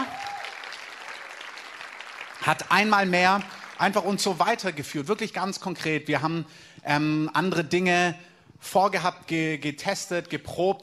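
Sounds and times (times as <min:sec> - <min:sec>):
audience applause: 0:00.0 - 0:04.3
speech: 0:02.4 - 0:10.8.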